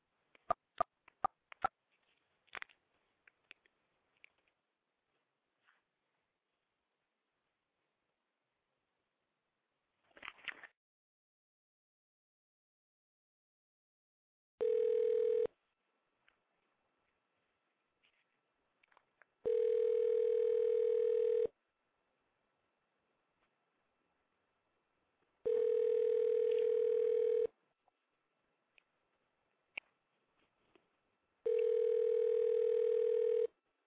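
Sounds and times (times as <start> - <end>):
telephone ringing tone: 14.6 - 15.5, 19.4 - 21.5, 25.5 - 27.5, 31.5 - 33.5.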